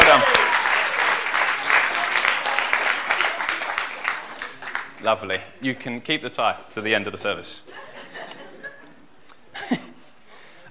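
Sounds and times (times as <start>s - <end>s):
audience applause: 0.0s - 5.0s
speech: 5.0s - 7.8s
laughter: 7.7s - 10.0s.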